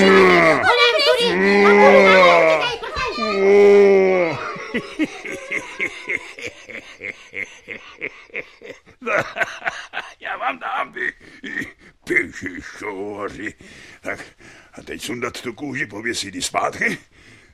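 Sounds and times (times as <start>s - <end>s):
voice imitating bear growls: 0.0s - 4.6s
laughter: 0.0s - 11.2s
speech: 14.9s - 17.4s.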